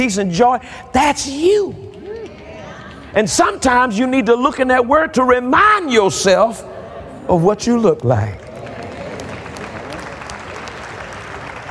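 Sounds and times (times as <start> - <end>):
speech: 0.0 - 2.0, 3.1 - 6.7, 7.3 - 8.4
audience clapping: 7.9 - 11.6.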